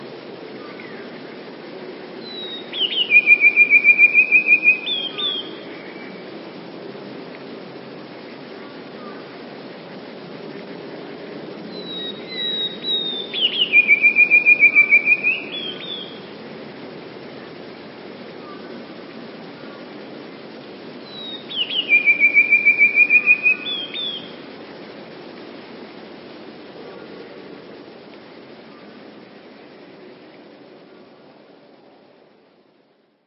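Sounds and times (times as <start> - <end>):
soft background hiss: 0.0 - 33.2
Eurasian blue tit song: 2.2 - 6.2, 11.7 - 16.3, 21.0 - 24.4.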